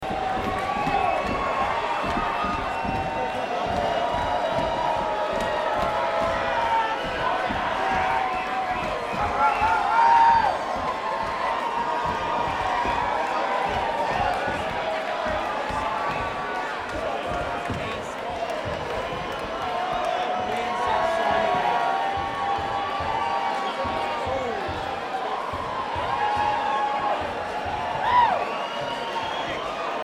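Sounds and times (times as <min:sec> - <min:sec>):
crowd: 0:00.0 - 0:30.0.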